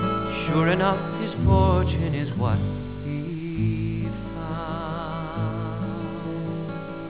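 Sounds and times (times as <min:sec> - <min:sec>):
ballad: 0:00.0 - 0:07.0.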